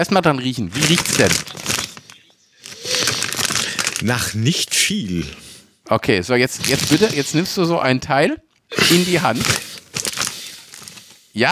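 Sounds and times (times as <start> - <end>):
speech: 0.0 - 1.6, 4.0 - 9.6, 11.4 - 11.5
bag being opened with crinkly rustling: 0.7 - 4.4, 6.6 - 7.6, 8.7 - 11.5.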